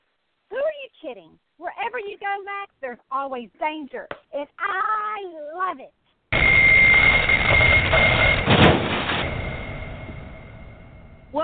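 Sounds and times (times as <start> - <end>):
speech: 1.0 - 6.0, 7.9 - 8.5
Wonder Wheel Ferris wheel screeching to a halt: 6.4 - 11.1.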